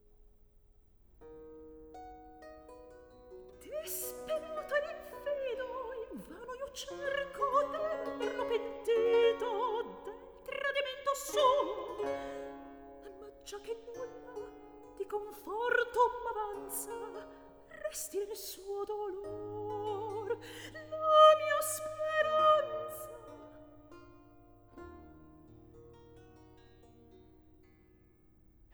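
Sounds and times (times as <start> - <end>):
recitative singing: 3.6 - 23.8.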